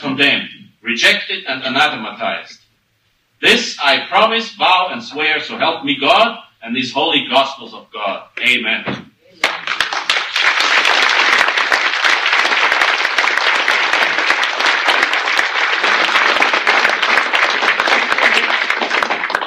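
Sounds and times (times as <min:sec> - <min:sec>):
speech: 0:00.0 - 0:02.6, 0:03.4 - 0:09.1
audience applause: 0:09.4 - 0:19.4.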